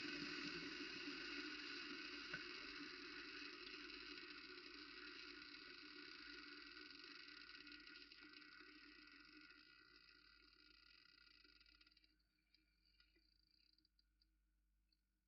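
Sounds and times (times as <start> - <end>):
kettle boiling recorded with contact microphones: 0.0 - 11.2.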